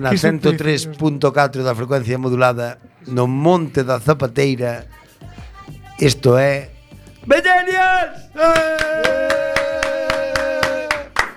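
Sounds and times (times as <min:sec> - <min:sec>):
speech: 0:00.0 - 0:05.4, 0:06.0 - 0:09.5
small audience applauding: 0:08.5 - 0:11.3.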